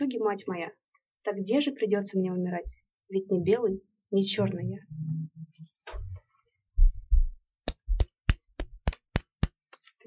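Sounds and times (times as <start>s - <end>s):
speech: 0.0s - 6.1s
low thumps: 2.7s - 3.8s, 4.4s - 6.2s, 6.8s - 8.0s
hand claps: 7.6s - 10.0s.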